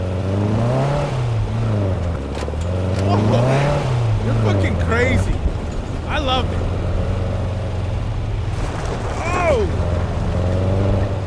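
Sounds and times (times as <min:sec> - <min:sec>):
dune buggy engine revving on all-terrain ground at night: 0:00.0 - 0:11.2.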